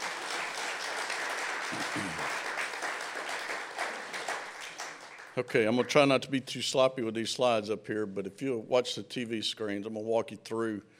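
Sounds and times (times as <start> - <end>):
audience applause: 0.0 - 5.4
speech: 1.7 - 2.5, 5.4 - 10.9.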